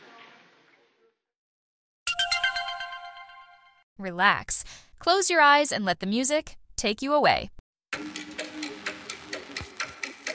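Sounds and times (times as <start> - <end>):
bell ringing: 2.1 - 3.8
speech: 4.0 - 8.2.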